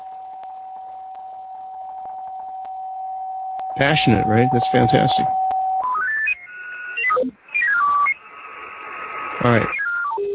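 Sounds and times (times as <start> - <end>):
speech: 3.8 - 5.4, 9.4 - 9.8
radio tuning tones from software-defined radio: 3.8 - 10.3.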